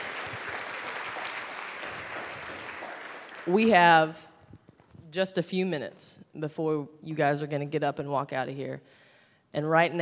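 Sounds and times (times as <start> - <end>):
applause: 0.0 - 3.8
speech: 3.4 - 4.3, 5.1 - 10.0.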